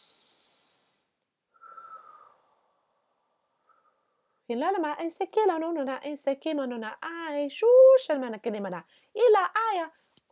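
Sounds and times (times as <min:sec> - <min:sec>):
soft drawn-out deep breath: 0:00.0 - 0:04.4
speech: 0:04.5 - 0:10.3.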